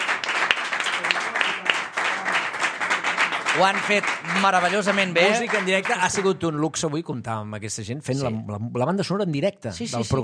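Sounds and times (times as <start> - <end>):
audience applause: 0.0 - 6.4
speech: 3.6 - 10.2.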